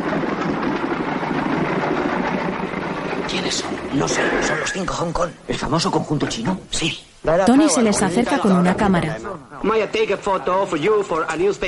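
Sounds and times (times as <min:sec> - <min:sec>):
car engine idling as it parks in an alley: 0:00.0 - 0:04.2
speech: 0:03.4 - 0:11.6.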